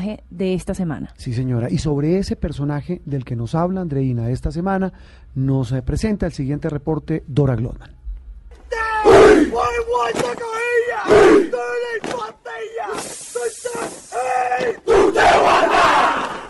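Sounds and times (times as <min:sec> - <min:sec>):
speech: 0:00.0 - 0:08.0, 0:09.2 - 0:16.3
Maori haka war chant by a group of voices: 0:09.0 - 0:16.4.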